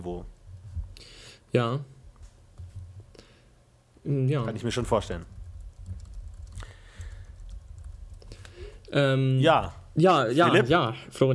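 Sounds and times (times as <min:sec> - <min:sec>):
speech: 0:00.0 - 0:00.4, 0:01.0 - 0:02.0, 0:04.0 - 0:05.4, 0:08.9 - 0:11.3
low steady hum: 0:00.0 - 0:11.3
computer keyboard typing messages: 0:04.5 - 0:09.0.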